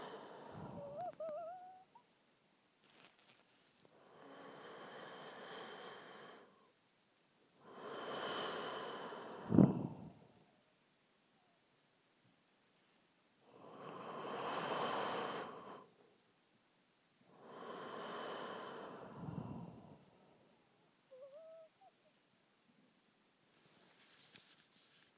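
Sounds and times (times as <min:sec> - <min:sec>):
weird breathing: 0:00.0 - 0:01.2, 0:04.0 - 0:06.6, 0:07.6 - 0:10.4, 0:13.5 - 0:16.0, 0:17.3 - 0:20.5.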